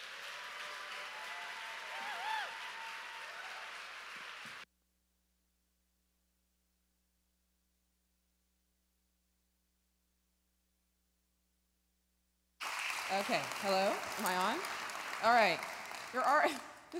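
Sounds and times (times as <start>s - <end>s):
standing ovation clapping for a speaker: 0.0s - 4.6s, 12.6s - 16.9s
person talking: 13.1s - 14.6s.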